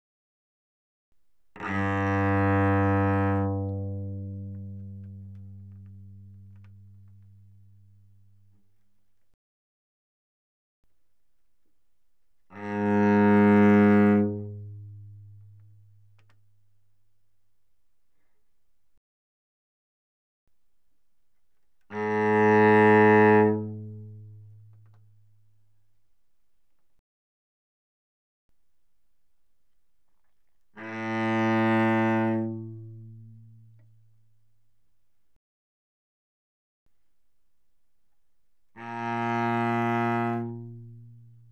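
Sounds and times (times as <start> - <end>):
cello bowed mezzo forte on the G string: 1.5 - 8.5, 12.4 - 16.5, 21.9 - 25.2, 30.7 - 34.0, 38.7 - 41.5.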